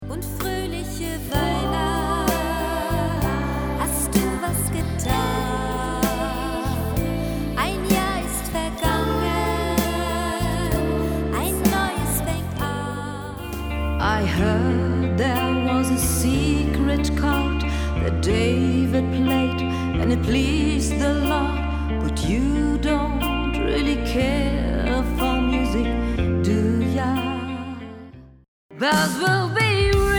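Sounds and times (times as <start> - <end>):
Christmas pop song backing tracks: 0.0 - 27.8, 28.8 - 30.1.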